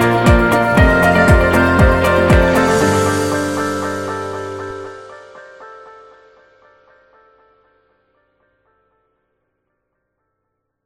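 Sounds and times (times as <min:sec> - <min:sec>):
inspirational corporate music: 0:00.0 - 0:06.0.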